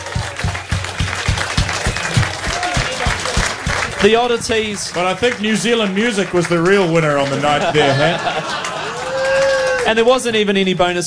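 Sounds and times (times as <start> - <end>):
faint rhythmic low thump: 0.0 - 4.8
audience applause: 0.0 - 10.3
speech: 4.0 - 8.7, 9.8 - 11.0
laughter: 7.0 - 9.9.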